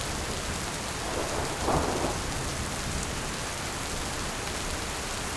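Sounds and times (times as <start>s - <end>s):
heavy rain in a thunderstorm: 0.2s - 5.3s
thunder in a thunderstorm: 0.7s - 4.0s.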